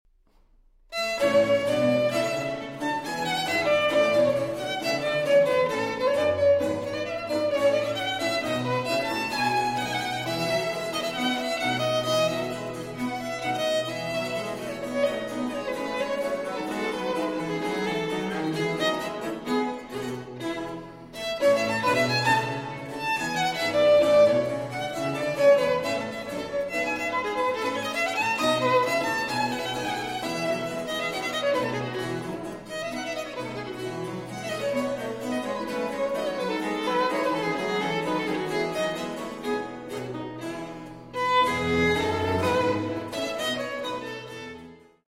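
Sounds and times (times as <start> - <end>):
violin sonata in B-flat major, allegro: 0.8 - 45.0.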